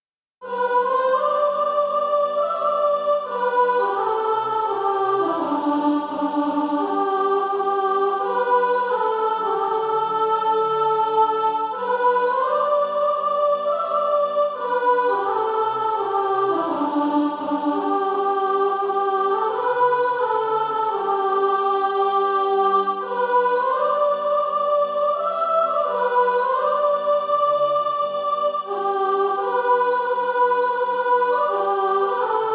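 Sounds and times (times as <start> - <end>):
soprano singing practice music: 0.4 - 32.5.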